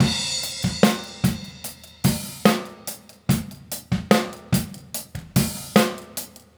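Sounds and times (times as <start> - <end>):
straight drum kit world pop beat: 0.0 - 6.5.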